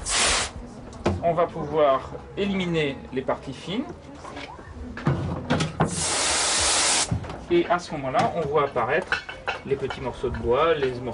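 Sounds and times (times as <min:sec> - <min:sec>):
water jets spraying at a sieving station: 0:00.0 - 0:00.6, 0:05.9 - 0:07.1
speech: 0:01.2 - 0:04.6, 0:07.5 - 0:11.1.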